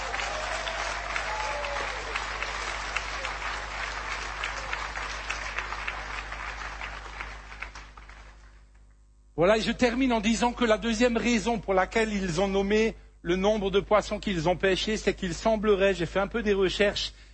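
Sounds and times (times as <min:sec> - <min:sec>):
audience applauding: 0:00.0 - 0:08.6
speech: 0:09.4 - 0:17.3.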